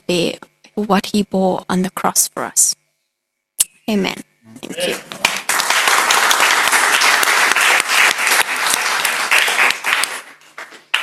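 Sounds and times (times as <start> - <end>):
speech: 0.1 - 2.8, 3.9 - 5.3
crowd applauding: 4.8 - 11.0.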